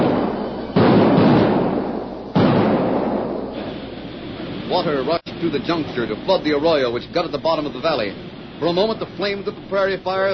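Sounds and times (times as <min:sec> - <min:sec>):
blasting powder explosions: 0:00.0 - 0:03.9
speech: 0:04.8 - 0:10.3.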